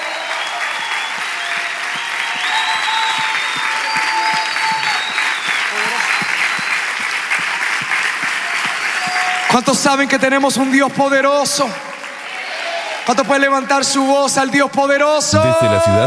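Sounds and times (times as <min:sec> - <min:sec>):
loud applause: 0:00.0 - 0:14.0, 0:15.2 - 0:16.0
speech: 0:09.5 - 0:11.9, 0:13.0 - 0:16.0.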